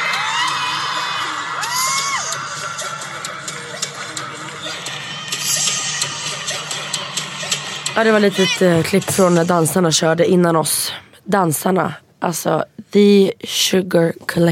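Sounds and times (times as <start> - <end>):
arena audience cheering wildly in Globen: 0.0 - 2.8
speech: 8.0 - 14.5.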